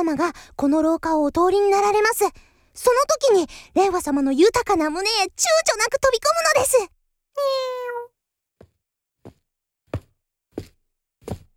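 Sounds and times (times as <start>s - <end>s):
speech: 0.0s - 8.0s
cat meowing: 7.4s - 8.1s.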